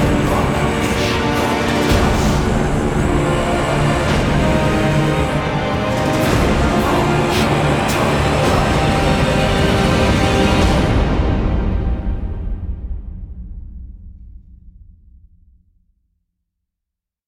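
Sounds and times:
climax music cue: 0.0s - 13.1s.

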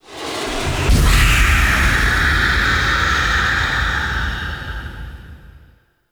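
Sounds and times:
exterior screech: 0.0s - 5.2s.

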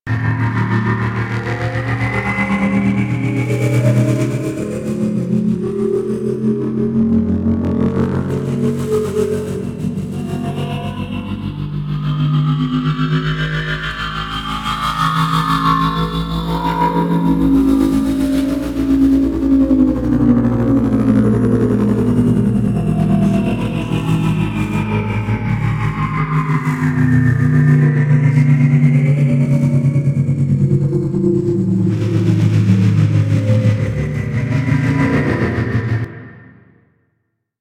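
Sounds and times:
nimble ship rotating: 0.1s - 36.6s.

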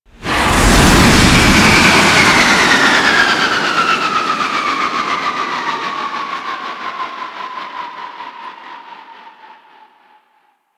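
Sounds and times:
spaceship stopping in an asteroid field: 0.1s - 6.0s.

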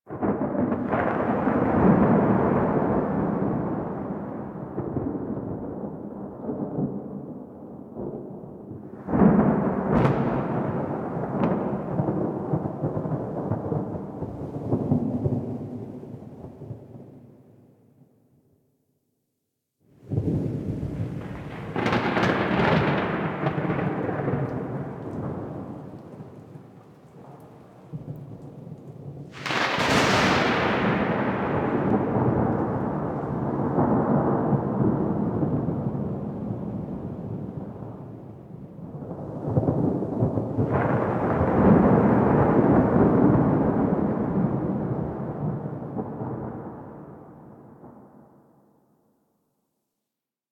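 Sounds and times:
thunder: 0.1s - 17.4s, 20.0s - 48.6s.

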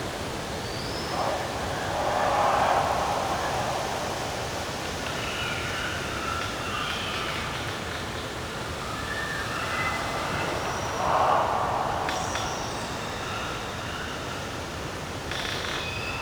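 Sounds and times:
night forest ambience bed: 0.2s - 16.1s.

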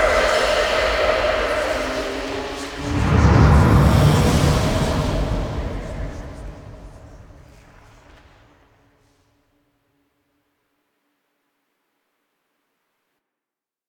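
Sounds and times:
ambient intro music: 0.0s - 7.8s.

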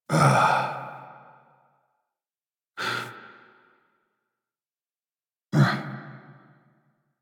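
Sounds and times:
breathing: 2.8s - 4.1s.

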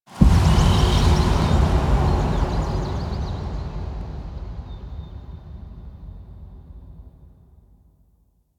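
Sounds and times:
short amphitheatre pre-show transition music: 0.2s - 5.4s.

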